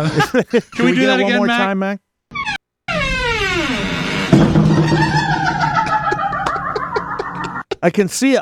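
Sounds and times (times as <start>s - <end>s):
laughter: 0.0s - 1.6s, 5.0s - 7.9s
speech: 0.0s - 2.0s, 7.8s - 8.4s
door creaking: 2.3s - 6.0s
door hitting doorstop and wiggling: 4.3s - 5.1s.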